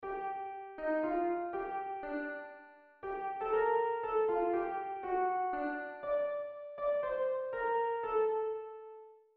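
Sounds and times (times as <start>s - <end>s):
piano piece: 0.0s - 9.3s.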